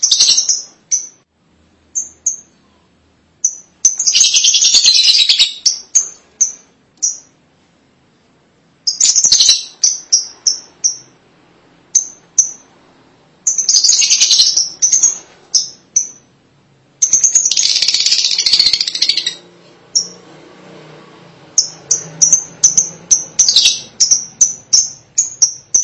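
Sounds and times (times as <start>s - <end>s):
lovebird chattering and chirping: 0.0s - 1.2s, 1.9s - 2.6s, 3.4s - 7.4s, 8.8s - 11.2s, 11.9s - 12.7s, 13.4s - 16.3s, 17.0s - 20.2s, 21.5s - 25.8s.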